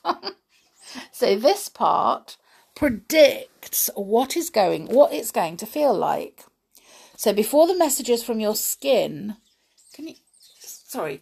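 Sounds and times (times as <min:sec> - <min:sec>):
speech: 0:01.2 - 0:06.5, 0:07.2 - 0:10.2, 0:10.9 - 0:11.2
noisy birds chirping: 0:09.3 - 0:11.2.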